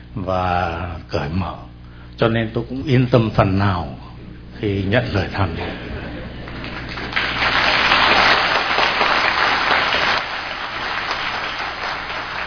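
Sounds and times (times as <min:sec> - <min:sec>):
speech: 0:00.2 - 0:05.9
laughter: 0:05.4 - 0:08.1
audience applause: 0:06.4 - 0:12.4.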